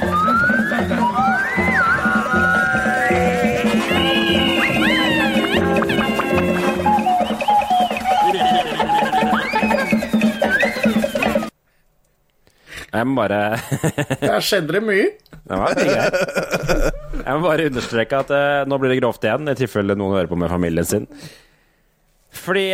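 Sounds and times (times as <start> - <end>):
laughter: 0.0 - 11.5, 15.5 - 17.4
podcast jingle: 0.0 - 11.5
speech: 13.0 - 21.4, 22.3 - 22.7.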